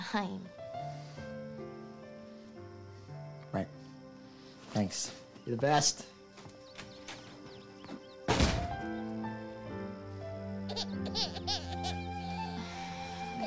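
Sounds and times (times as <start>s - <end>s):
steady tonal background: 0.0s - 13.4s
speech: 0.1s - 0.6s, 3.5s - 3.8s, 4.7s - 6.2s
door slamming shut: 8.3s - 9.0s.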